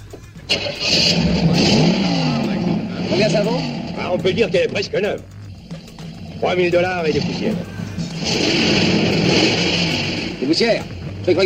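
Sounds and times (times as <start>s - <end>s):
car engine cranking, starting and revving: 0.4s - 11.4s
speech: 3.2s - 5.3s, 6.4s - 9.7s, 10.5s - 11.4s.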